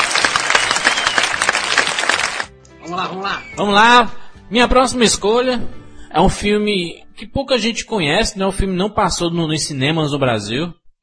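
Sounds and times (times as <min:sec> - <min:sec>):
applause: 0:00.0 - 0:02.5
speech: 0:02.9 - 0:11.0.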